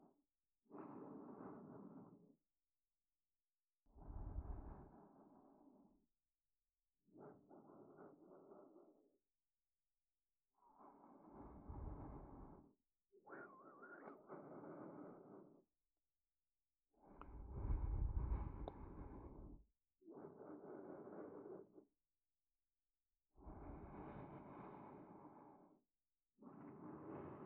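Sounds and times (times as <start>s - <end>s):
sleep aid loop in left channel: 0.0s - 2.5s, 3.9s - 6.1s, 7.0s - 9.5s, 10.4s - 15.8s, 16.9s - 21.9s, 23.4s - 27.4s.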